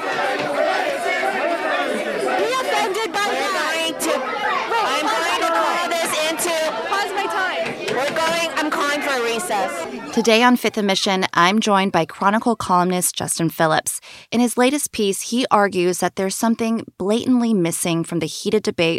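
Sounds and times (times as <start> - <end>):
school board meeting crowd shouting: 0.0 - 11.0
speech: 9.1 - 18.9.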